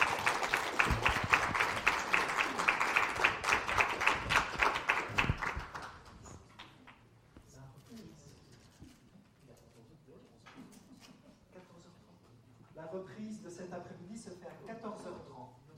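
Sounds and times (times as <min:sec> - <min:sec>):
audience applause: 0:00.0 - 0:06.3.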